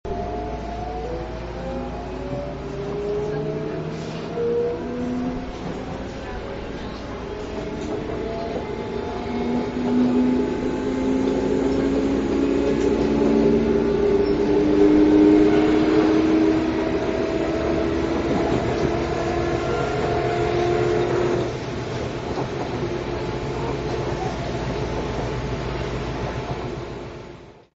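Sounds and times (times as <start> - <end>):
train: 0.1 - 27.7.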